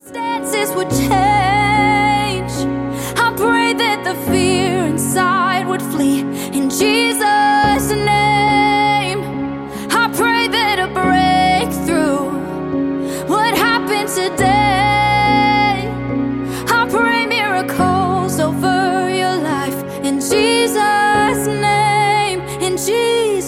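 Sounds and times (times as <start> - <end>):
piano music: 0.0 - 23.4.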